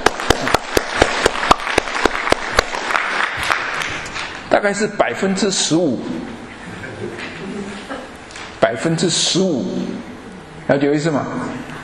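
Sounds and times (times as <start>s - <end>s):
applause: 0.0s - 4.4s
speech: 4.5s - 6.5s, 8.7s - 10.1s, 10.7s - 11.7s.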